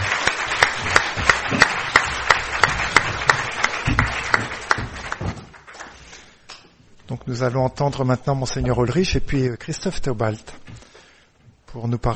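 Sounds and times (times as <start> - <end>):
audience applauding: 0.0 - 6.2
speech: 7.3 - 10.7, 11.7 - 12.1.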